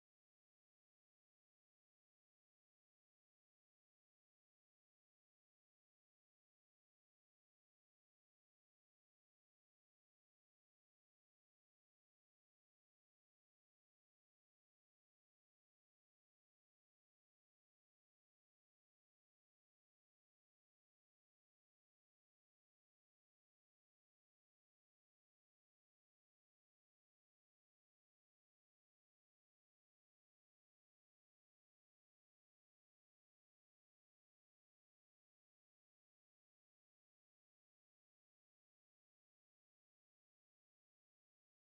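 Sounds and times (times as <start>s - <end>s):
cellos through Marshall JVM: 0.0s - 41.7s.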